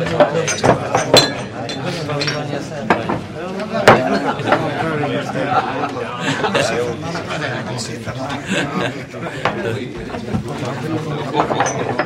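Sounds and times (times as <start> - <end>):
bar ambience: 0.3 - 12.0
laughter: 3.6 - 11.0.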